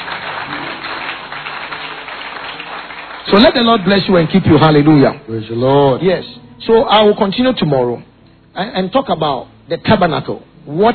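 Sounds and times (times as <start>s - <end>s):
crowd clapping hands: 0.0s - 5.2s
speech: 3.3s - 10.9s.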